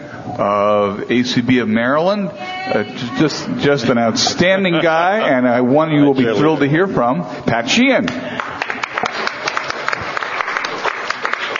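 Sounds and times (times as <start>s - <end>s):
speech: 0.4s - 8.2s
crowd applause: 8.1s - 11.5s.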